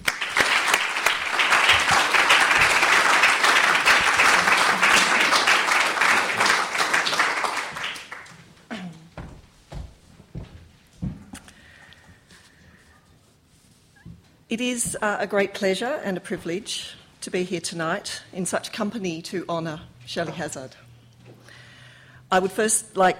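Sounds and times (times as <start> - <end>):
audience applause: 0.0 - 8.4
speech: 14.6 - 20.8, 22.3 - 23.1.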